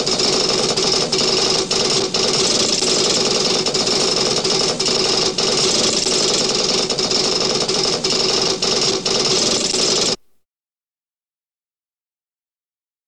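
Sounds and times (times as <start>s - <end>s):
library computer on a bridge: 0.0s - 10.3s.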